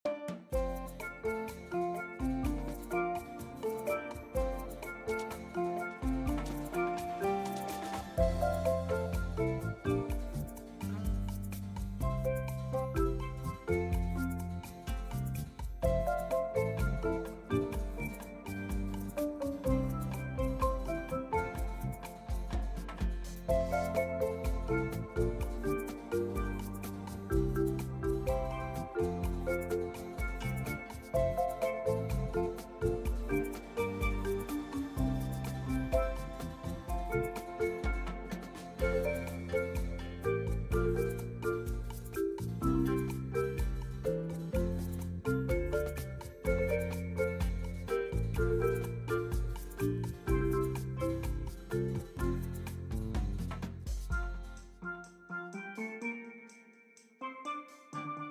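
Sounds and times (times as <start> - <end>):
background music: 0.0 - 58.3.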